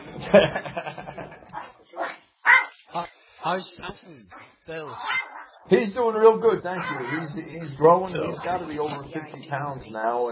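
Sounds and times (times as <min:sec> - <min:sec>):
laughter: 0:00.1 - 0:01.5
speech: 0:00.3 - 0:01.0, 0:03.5 - 0:10.3
dog barking: 0:01.6 - 0:02.8, 0:04.3 - 0:05.6, 0:06.7 - 0:07.4.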